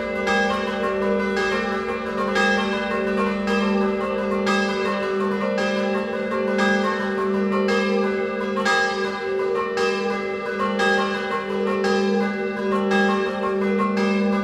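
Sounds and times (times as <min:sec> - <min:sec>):
scampanottata bell ringing in Carnia: 0:00.0 - 0:14.4.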